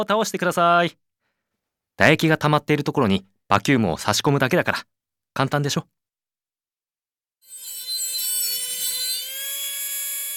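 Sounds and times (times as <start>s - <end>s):
speech: 0.0s - 1.0s, 2.0s - 6.0s
dental drill whirring: 7.4s - 10.3s.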